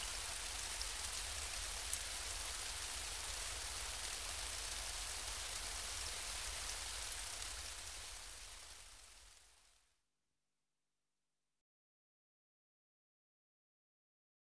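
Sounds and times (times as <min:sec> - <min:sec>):
light rain on pavement: 0:00.0 - 0:09.9.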